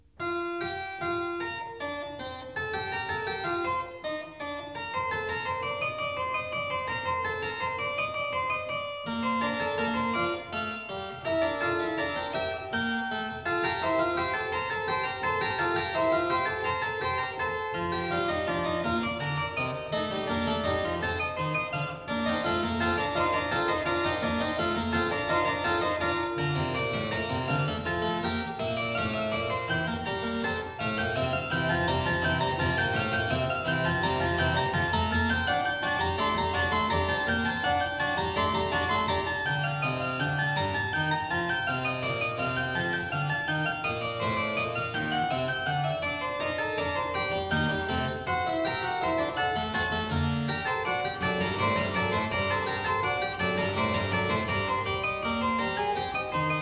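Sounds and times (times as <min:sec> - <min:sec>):
clavier fugue in B-flat major: 0:00.0 - 0:56.5.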